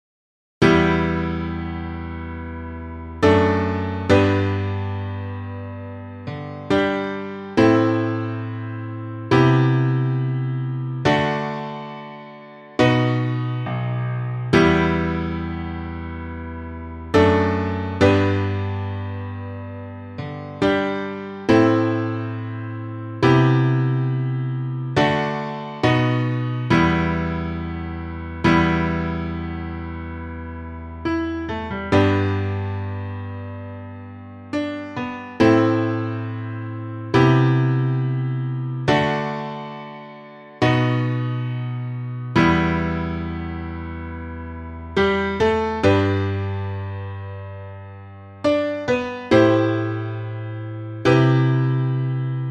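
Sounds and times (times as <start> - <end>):
piano: 0.6 - 52.4.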